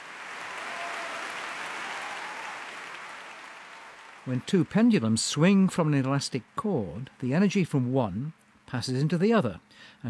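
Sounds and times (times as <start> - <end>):
concert audience applause: 0.0 - 5.2
speech: 4.2 - 10.0.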